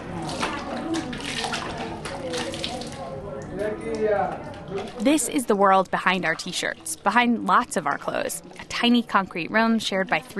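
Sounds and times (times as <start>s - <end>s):
cold water dumped over head in shower stall: 0.1s - 3.0s
speech: 4.0s - 10.3s.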